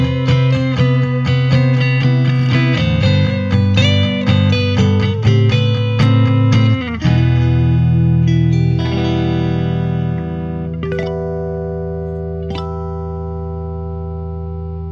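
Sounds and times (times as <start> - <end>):
clean guitar: 0.0 - 14.8.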